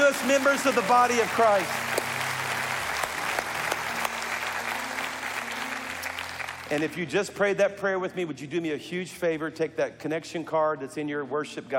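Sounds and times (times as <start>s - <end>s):
congregation applauding in church to welcome new members: 0.0s - 7.3s
speech: 0.2s - 1.9s, 6.7s - 11.7s.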